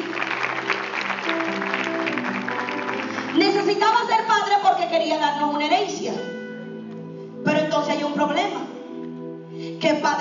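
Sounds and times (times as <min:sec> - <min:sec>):
audience applause: 0:00.0 - 0:03.9
speech: 0:04.9 - 0:06.4, 0:07.8 - 0:08.7, 0:09.8 - 0:10.1.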